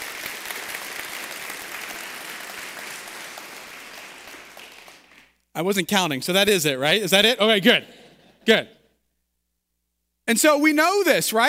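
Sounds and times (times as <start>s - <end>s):
crowd clapping: 0.0s - 5.4s
speech: 5.6s - 8.8s, 10.3s - 11.4s.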